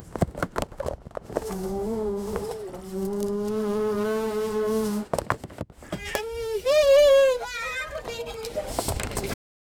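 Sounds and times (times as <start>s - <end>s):
balloons rubbing against each other: 0.7s - 7.4s.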